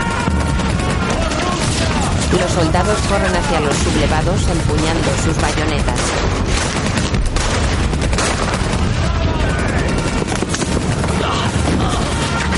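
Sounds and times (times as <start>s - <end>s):
shouting: 0.0s - 3.8s, 8.9s - 10.3s, 11.0s - 12.5s
machine gun fire at soldiers in a 2008 war drama: 0.0s - 12.5s
speech: 2.3s - 6.8s.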